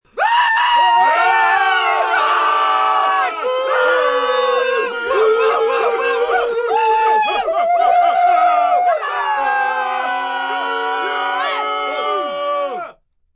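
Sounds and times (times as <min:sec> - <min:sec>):
loud group of 5 to 10 people cheering with quasi war cry: 0:00.1 - 0:13.0
laughter: 0:05.1 - 0:10.0.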